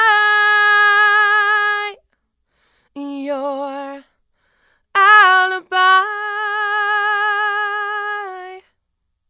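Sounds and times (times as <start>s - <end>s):
female vocals: 0.0s - 2.0s, 3.0s - 4.2s, 4.9s - 8.8s.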